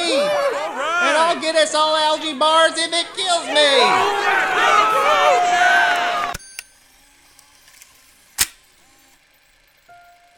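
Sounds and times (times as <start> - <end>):
crowd cheering and applause: 0.0 - 6.4
speech: 1.3 - 5.8.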